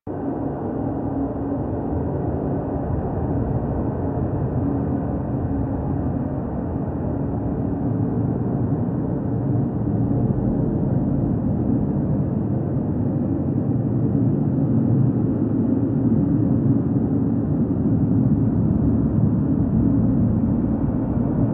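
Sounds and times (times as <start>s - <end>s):
space ambience: 0.1s - 21.5s.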